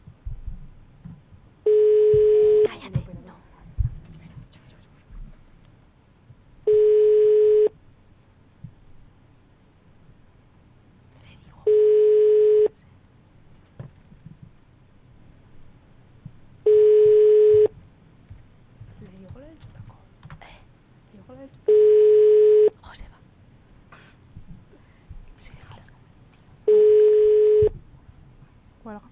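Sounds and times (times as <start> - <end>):
telephone ringback tone, call unanswered: 1.7 - 2.7, 6.7 - 7.7, 11.7 - 12.7, 16.7 - 17.7, 21.7 - 22.7, 26.7 - 27.7.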